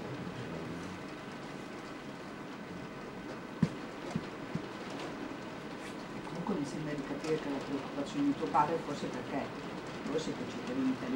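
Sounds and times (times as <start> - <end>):
rain falling: 0.0 - 11.1
speech: 6.6 - 11.1.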